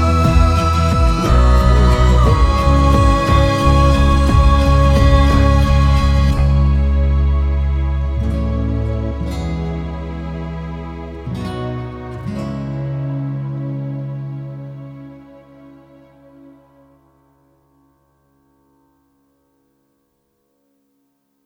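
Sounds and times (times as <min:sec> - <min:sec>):
pop ballad: 0:00.0 - 0:11.0.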